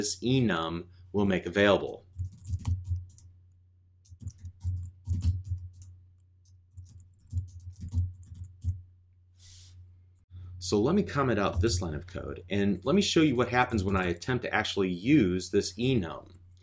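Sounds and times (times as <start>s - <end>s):
speech: 0.0s - 2.1s, 10.7s - 16.4s
low steady hum: 0.0s - 16.6s
typing code on a computer keyboard: 2.2s - 3.3s, 4.0s - 8.8s.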